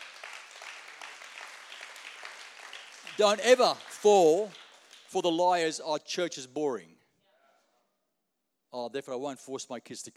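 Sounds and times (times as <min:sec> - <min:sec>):
audience clapping: 0:00.0 - 0:05.6
speech: 0:03.2 - 0:07.0, 0:08.7 - 0:10.1.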